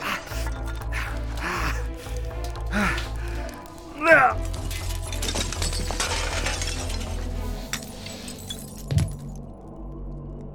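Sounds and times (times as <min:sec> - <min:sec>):
person gasping: 0:00.0 - 0:03.5
glass breaking while climbing through window: 0:00.2 - 0:01.2, 0:04.4 - 0:09.4.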